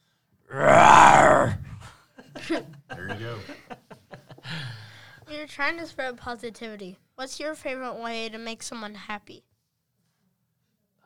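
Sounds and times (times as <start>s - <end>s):
person imitating a tiger roar: 0.5s - 1.9s
laughter: 1.8s - 4.9s
speech: 5.5s - 9.5s.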